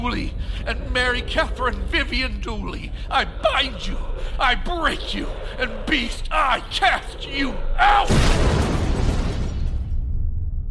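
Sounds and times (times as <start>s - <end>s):
speech: 0.0s - 8.6s
deep rumble: 0.0s - 10.6s
crown shattering with a cracking boom: 8.1s - 10.6s.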